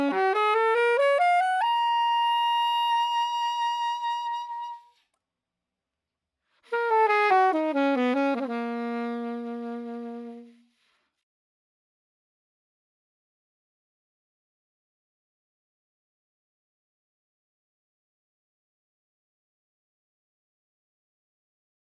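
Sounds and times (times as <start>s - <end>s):
saxophone: 0.0s - 5.0s, 6.7s - 10.8s.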